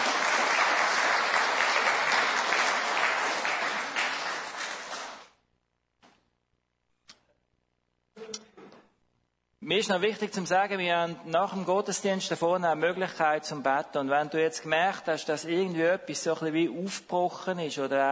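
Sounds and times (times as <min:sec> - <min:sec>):
audience applause: 0:00.0 - 0:05.3
speech: 0:09.7 - 0:18.1.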